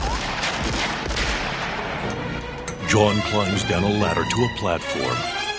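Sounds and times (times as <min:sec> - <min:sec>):
gunfire in a film action scene: 0:00.0 - 0:02.2
speech: 0:02.9 - 0:05.4.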